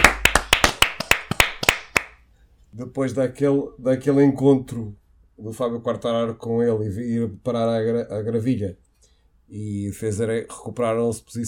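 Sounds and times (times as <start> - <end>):
hands clapping: 0.0 - 2.2
speech: 2.8 - 8.8, 9.5 - 11.4.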